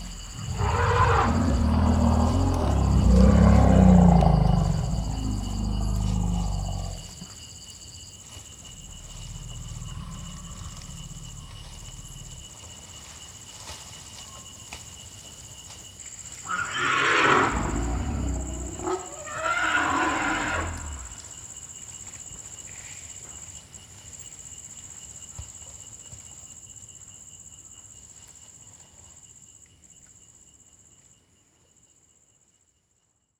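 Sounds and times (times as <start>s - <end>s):
elephants: 0.0s - 7.4s, 8.2s - 23.6s.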